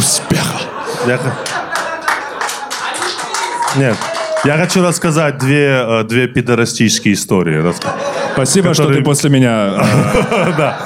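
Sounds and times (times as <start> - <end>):
laughter: 0.0 - 4.6, 7.6 - 10.8
speech: 1.0 - 1.6, 3.7 - 10.8
audience clapping: 1.2 - 5.8.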